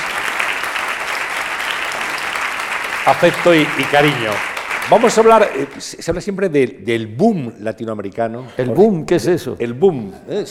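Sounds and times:
audience applause: 0:00.0 - 0:05.9
speech: 0:03.1 - 0:10.4.

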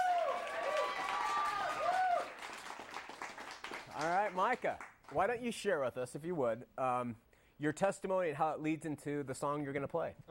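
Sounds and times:
audience applause: 0:00.0 - 0:04.6
speech: 0:04.3 - 0:10.2.

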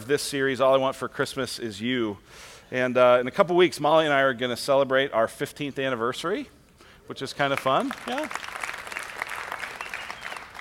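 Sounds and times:
speech: 0:00.1 - 0:08.5
polite audience applause: 0:07.5 - 0:10.5.

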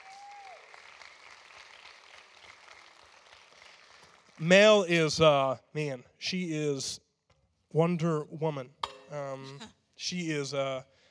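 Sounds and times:
audience applause: 0:00.0 - 0:04.9
speech: 0:04.4 - 0:07.0, 0:07.7 - 0:10.9.

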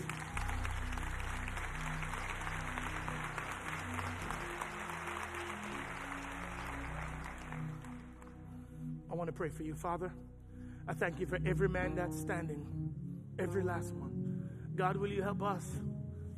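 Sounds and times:
audience applause: 0:00.0 - 0:08.3
speech: 0:09.2 - 0:10.3, 0:10.9 - 0:14.1, 0:14.8 - 0:15.9.

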